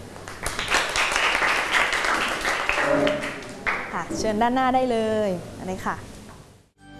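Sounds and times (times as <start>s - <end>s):
classroom applause: 0.3s - 4.0s
speech: 4.1s - 6.1s.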